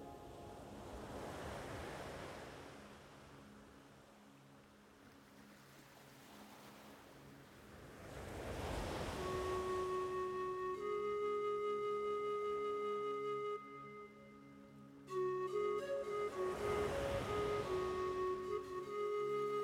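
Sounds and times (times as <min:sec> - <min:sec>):
ocean waves: 0:00.0 - 0:11.6, 0:15.0 - 0:19.6
pan flute melody: 0:09.0 - 0:19.6.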